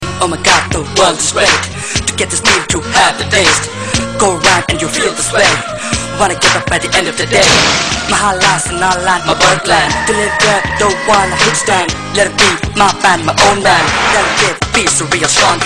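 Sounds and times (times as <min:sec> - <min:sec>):
rap beat: 0:00.2 - 0:15.6.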